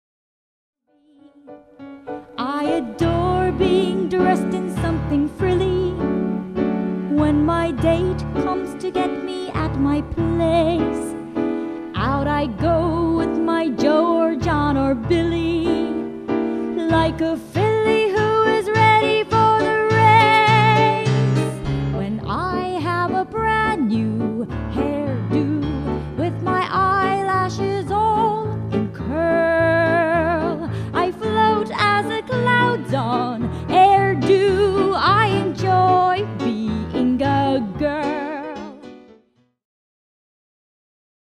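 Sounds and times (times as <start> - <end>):
song: 0.9 - 39.1.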